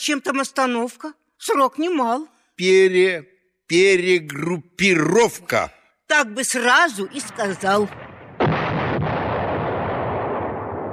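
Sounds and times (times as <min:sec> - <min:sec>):
speech: 0:00.0 - 0:08.1
heavy artillery blasts: 0:07.1 - 0:10.9
deep sustained rumble of artillery battery fire: 0:07.9 - 0:10.9.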